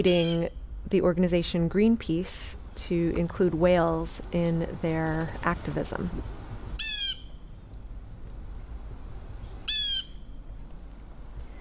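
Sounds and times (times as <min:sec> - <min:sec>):
blue jay calling noisily: 0:00.0 - 0:00.7, 0:02.6 - 0:07.7, 0:09.3 - 0:11.5
speech: 0:00.0 - 0:06.4.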